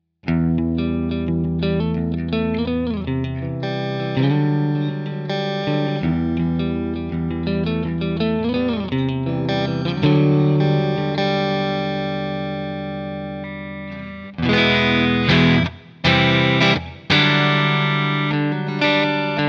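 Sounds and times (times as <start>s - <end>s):
clean electric guitar through 4x12 Vintage Basketweave and 2x12 Boutique Twin cabinets: 0.2s - 19.4s.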